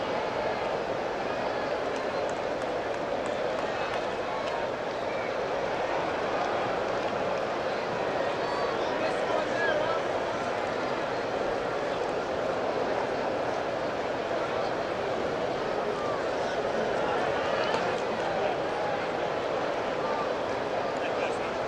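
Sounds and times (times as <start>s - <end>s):
stadium crowd ambience: 0.0s - 21.6s.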